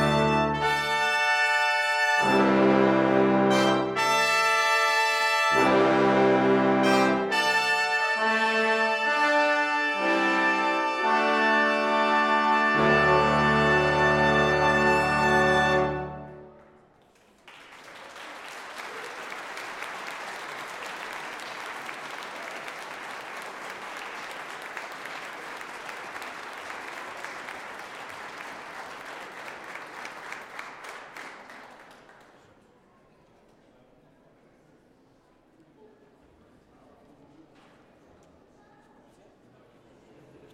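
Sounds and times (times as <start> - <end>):
fanfare: 0.0 - 16.6.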